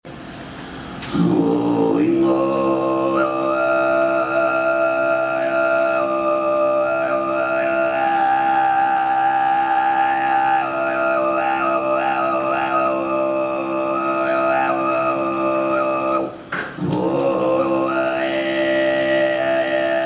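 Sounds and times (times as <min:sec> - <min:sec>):
embellished kargyraa throat singing: 0:01.1 - 0:20.0.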